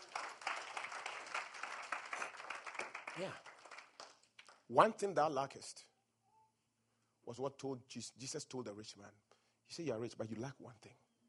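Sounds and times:
faint church congregation clapping for Jesus: 0.0 - 4.7
speech: 3.2 - 3.5, 4.7 - 5.9, 7.2 - 11.0.

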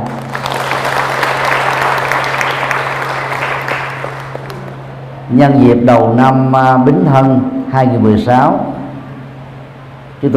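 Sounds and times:
audience applause: 0.0 - 4.8
speech: 5.3 - 8.7, 10.2 - 10.3.

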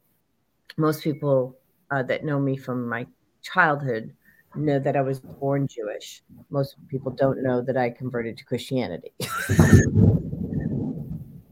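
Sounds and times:
speech: 0.8 - 10.3
thunderclap from a thunderstorm: 9.4 - 11.5.

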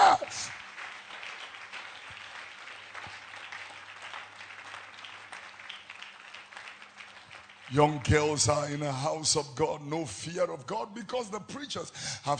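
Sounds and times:
audience clapping: 0.0 - 9.4
speech: 7.7 - 12.3.

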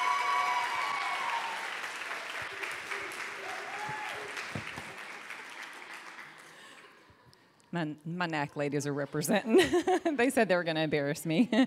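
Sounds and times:
audience applause for a woman speaker at an evening church gathering: 0.0 - 7.1
speech: 7.7 - 11.6.

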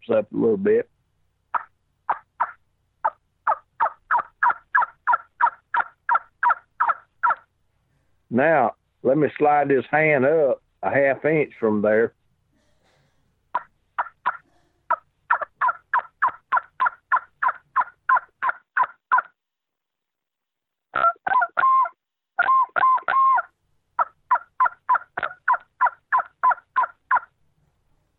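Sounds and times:
speech: 0.0 - 0.9, 8.3 - 12.2
turkey hunting call blown by mouth giving hen yelps: 1.5 - 7.5, 13.6 - 19.3, 21.0 - 27.3.

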